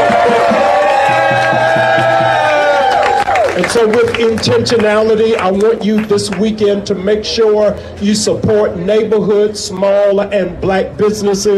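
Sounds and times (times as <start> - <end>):
crowd cheering: 0.0 - 6.2
speech: 3.7 - 11.5.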